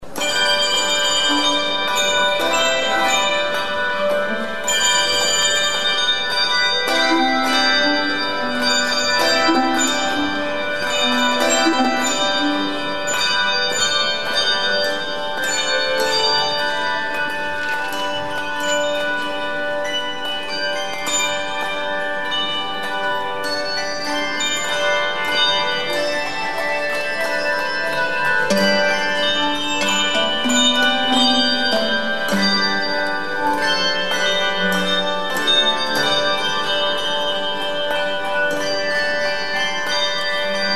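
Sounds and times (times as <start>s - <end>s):
Easter bells ringing: 0.0s - 40.7s.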